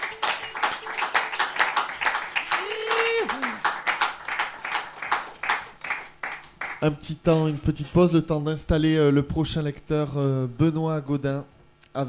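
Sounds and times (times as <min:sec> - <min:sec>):
audience applause after poetry reading: 0:00.0 - 0:06.8
speech: 0:06.8 - 0:12.0.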